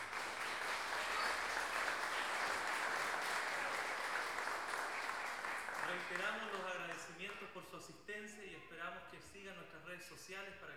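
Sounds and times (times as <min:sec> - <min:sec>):
audience applause: 0:00.0 - 0:06.6
speech: 0:06.0 - 0:10.7.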